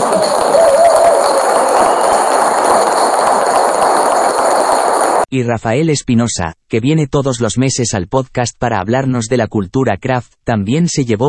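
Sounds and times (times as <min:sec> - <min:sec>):
audience applause: 0:00.0 - 0:05.3
speech: 0:05.3 - 0:11.2.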